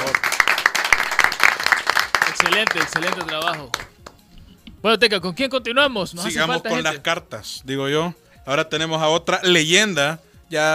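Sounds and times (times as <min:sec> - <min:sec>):
audience applause: 0:00.0 - 0:03.9
speech: 0:02.4 - 0:03.8, 0:04.8 - 0:10.7.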